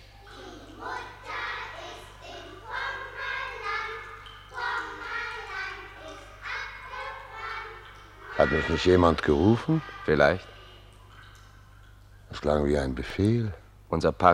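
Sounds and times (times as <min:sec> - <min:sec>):
children singing in a park: 0:00.0 - 0:10.9
faint constant low hum: 0:00.0 - 0:14.3
speech: 0:08.4 - 0:10.6, 0:12.4 - 0:14.3.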